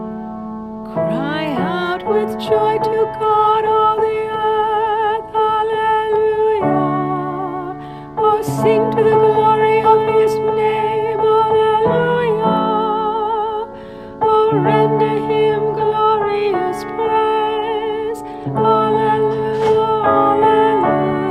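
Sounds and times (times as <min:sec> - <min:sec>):
antiphon chant: 0:00.9 - 0:21.2.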